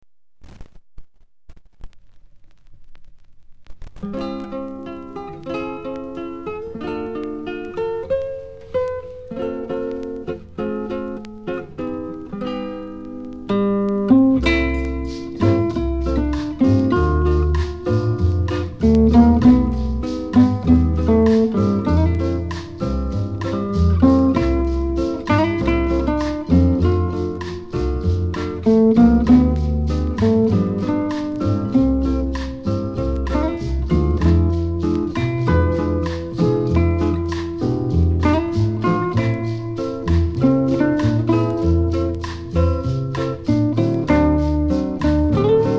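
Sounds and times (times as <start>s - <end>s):
bossa nova music: 4.0s - 45.7s.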